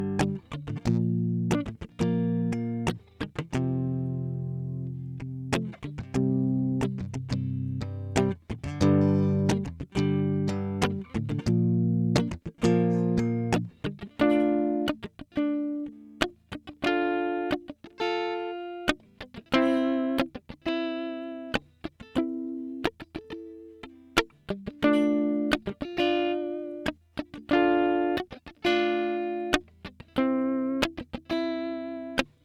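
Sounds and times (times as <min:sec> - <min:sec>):
guitar: 0:00.0 - 0:32.4.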